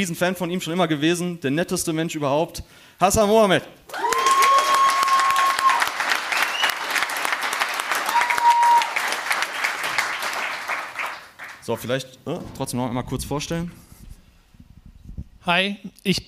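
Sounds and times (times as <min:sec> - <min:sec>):
speech: 0:00.0 - 0:04.1, 0:11.7 - 0:13.9, 0:15.4 - 0:16.2
people whooping: 0:03.9 - 0:07.1, 0:07.8 - 0:09.3
crowd applauding: 0:03.9 - 0:11.6
whistles: 0:04.4 - 0:07.0, 0:08.1 - 0:09.0.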